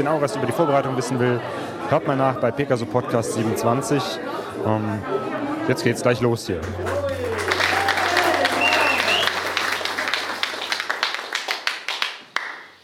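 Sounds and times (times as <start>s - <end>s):
speech: 0.0s - 7.0s
audience applause: 6.6s - 12.8s.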